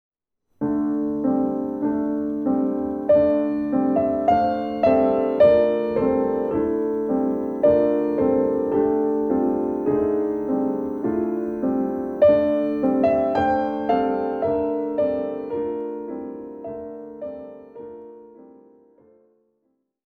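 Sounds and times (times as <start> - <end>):
piano sonata: 0.5 - 19.6.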